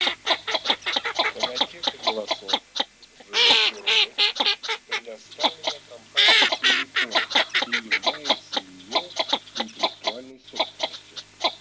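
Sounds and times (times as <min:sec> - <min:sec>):
laughter: 0:00.0 - 0:02.6, 0:03.2 - 0:10.7
northern shoveler nasal clucking calls: 0:00.0 - 0:11.5.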